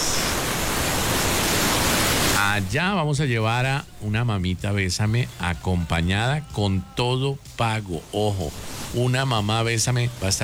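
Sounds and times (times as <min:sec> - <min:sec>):
ocean waves at San Andrés island: 0:00.0 - 0:02.7, 0:08.0 - 0:10.4
speech: 0:02.6 - 0:10.4.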